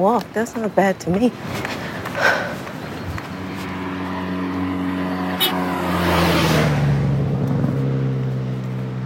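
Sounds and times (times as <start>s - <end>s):
speech: 0.0s - 2.3s
cars passing on a highway: 0.0s - 9.0s
faint footsteps: 1.3s - 3.8s.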